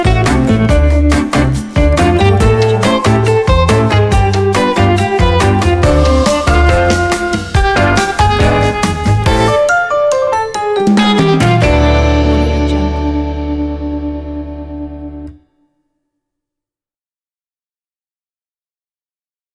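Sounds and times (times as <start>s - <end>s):
vintage jazz: 0.0s - 9.8s, 10.8s - 15.3s.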